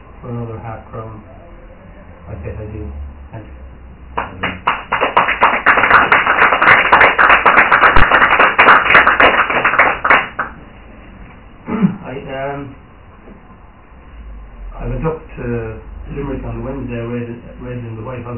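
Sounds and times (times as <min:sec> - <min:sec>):
speech: 0:00.2 - 0:01.4, 0:02.3 - 0:04.7, 0:12.4 - 0:13.4, 0:15.0 - 0:18.3
audience applause: 0:04.2 - 0:10.5.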